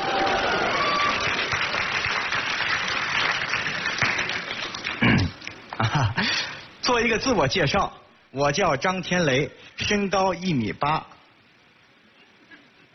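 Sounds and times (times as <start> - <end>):
audience applause: 0.0 - 6.5
speech: 5.9 - 11.1.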